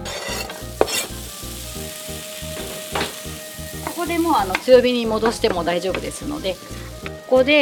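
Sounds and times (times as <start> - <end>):
stirring scrapes in a pan: 0.0 - 1.2
diced apples and ginger sizzling in butter in a pan: 0.0 - 7.6
speech: 4.1 - 7.6.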